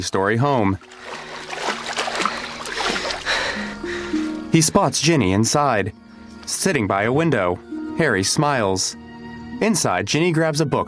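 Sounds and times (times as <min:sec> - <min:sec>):
speech: 0:00.0 - 0:01.2, 0:04.6 - 0:09.0, 0:09.6 - 0:10.8
footsteps sloshing through ankle-high water: 0:00.8 - 0:04.3.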